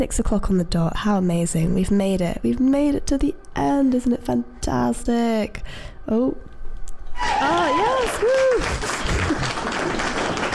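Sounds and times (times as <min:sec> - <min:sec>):
speech: 0:00.0 - 0:06.5, 0:07.2 - 0:10.2
crowd cheering and applauding sound effect: 0:07.2 - 0:10.5.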